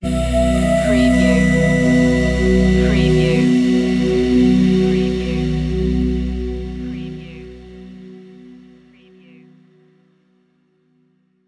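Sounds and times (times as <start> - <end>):
web ident jingle: 0.0 - 8.2.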